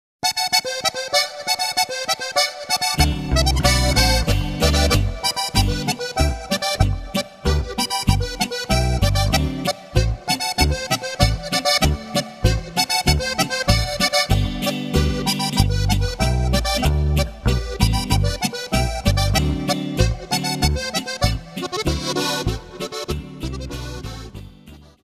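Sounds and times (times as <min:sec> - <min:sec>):
boarischer folk dance music: 0:00.2 - 0:25.0.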